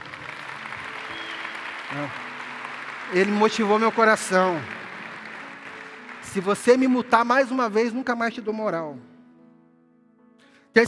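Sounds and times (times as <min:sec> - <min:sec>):
audience applauding: 0:00.0 - 0:08.1
speech: 0:01.9 - 0:02.3, 0:03.1 - 0:04.8, 0:06.3 - 0:09.1.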